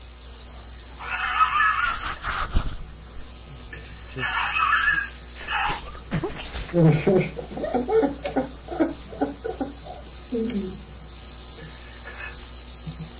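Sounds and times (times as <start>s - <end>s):
person laughing: 1.2s - 2.8s, 4.2s - 10.1s, 12.8s - 13.1s.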